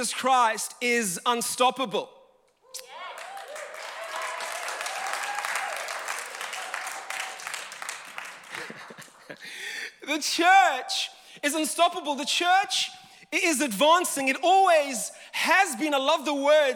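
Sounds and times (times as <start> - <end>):
speech: 0.0 - 2.2, 9.3 - 16.7
audience clapping: 2.8 - 9.5
laughter: 8.3 - 9.6.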